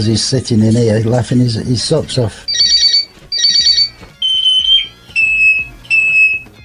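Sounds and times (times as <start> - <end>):
speech: 0.0 - 2.9
parrot mimicking smoke alarm beeps: 2.5 - 6.4.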